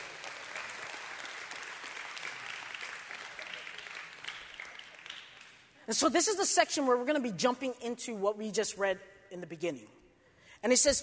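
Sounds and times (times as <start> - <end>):
audience applause: 0.0 - 5.8
speech: 5.9 - 10.0, 10.6 - 11.0.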